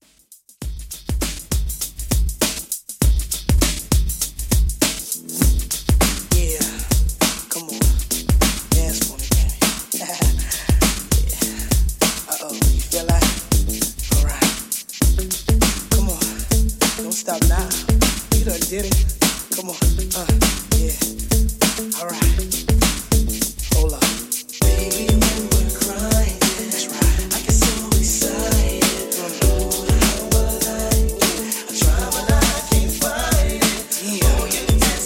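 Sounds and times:
90s drum beat: 0:00.0 - 0:35.0.

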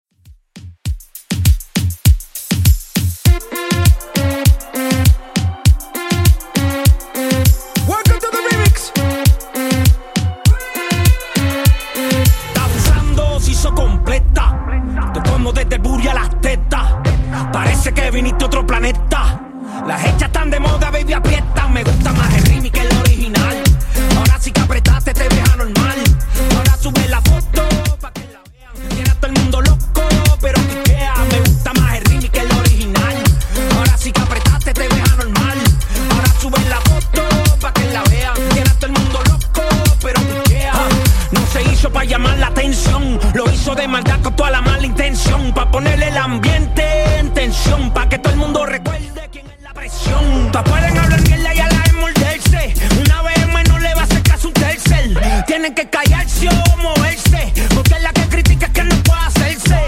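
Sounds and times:
reggaeton beat: 0:00.1 - 0:59.8.

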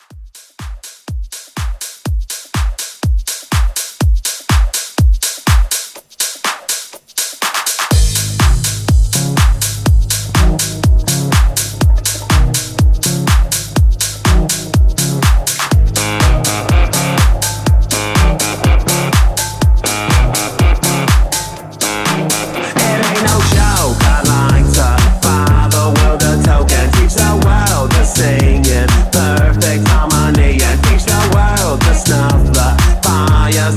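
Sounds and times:
house drum beat: 0:00.0 - 0:33.7.

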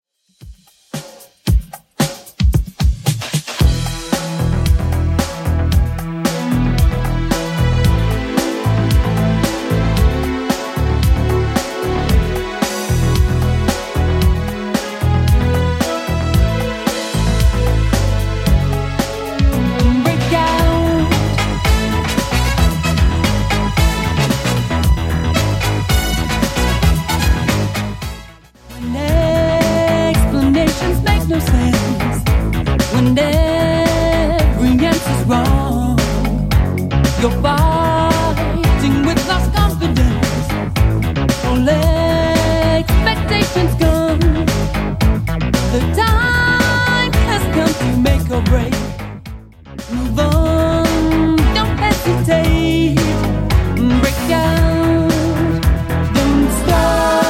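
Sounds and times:
80s style music: 0:00.4 - 0:57.2.

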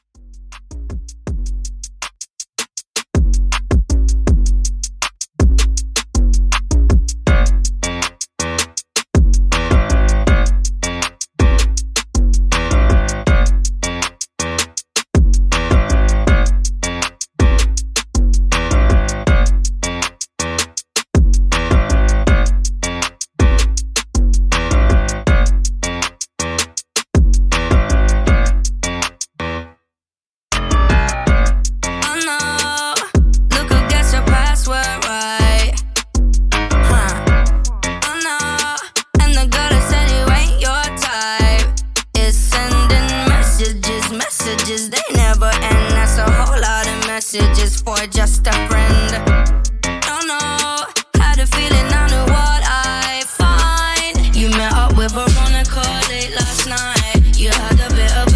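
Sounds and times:
twerk bass beat: 0:00.0 - 0:29.4, 0:30.5 - 0:58.3.

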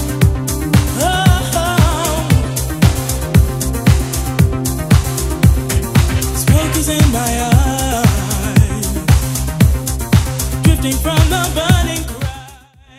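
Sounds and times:
90s drum loop: 0:00.0 - 0:12.9.

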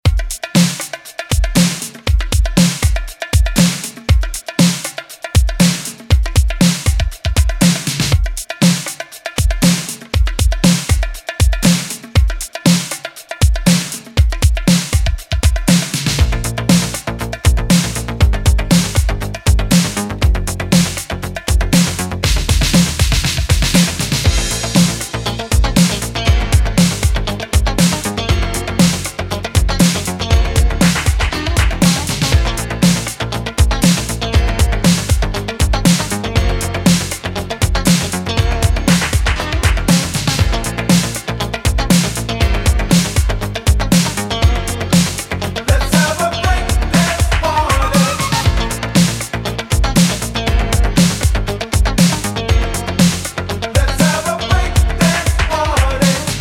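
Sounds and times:
80s remix music: 0:00.0 - 0:56.3.

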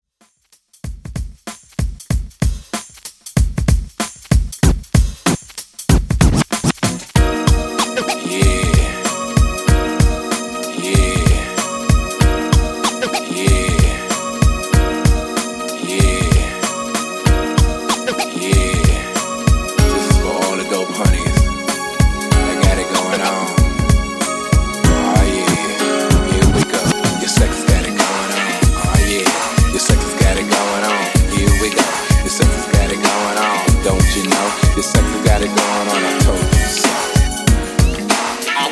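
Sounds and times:
90s R and B music at 95 Bpm: 0:00.8 - 0:38.7.

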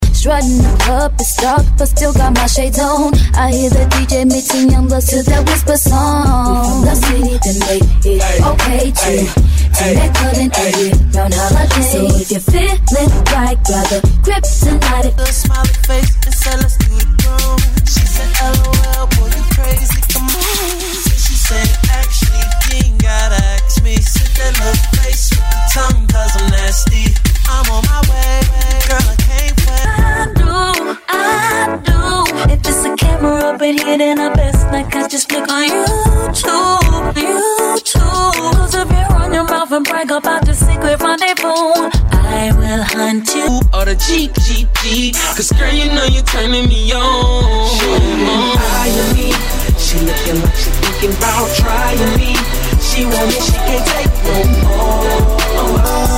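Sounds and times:
throwback hip hop and R&B megamix: 0:00.0 - 0:56.1.

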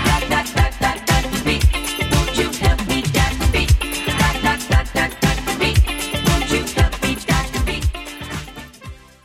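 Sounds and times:
1980s-style drum beat at 116 bpm: 0:00.0 - 0:09.0.

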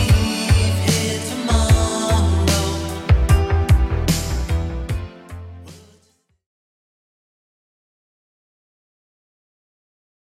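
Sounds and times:
80s Redrum beat at 75 bpm: 0:00.0 - 0:05.0.

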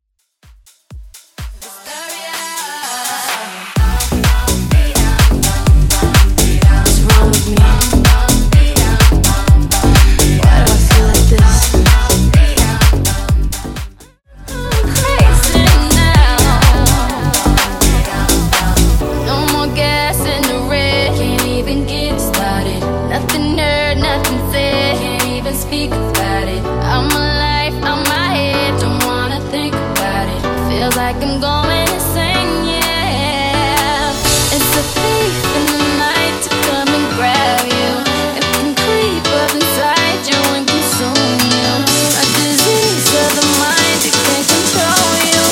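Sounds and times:
remix at 126 BPM: 0:00.5 - 0:45.5.

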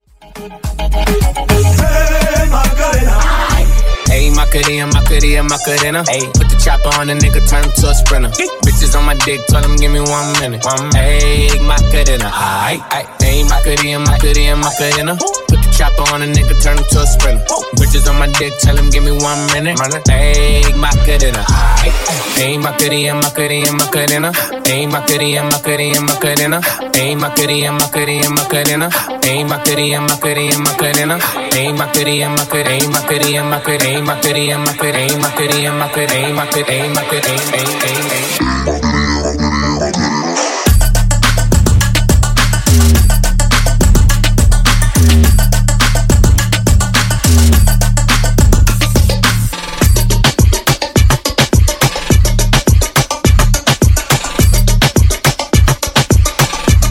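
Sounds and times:
dirty remix segue music: 0:00.0 - 0:56.9.

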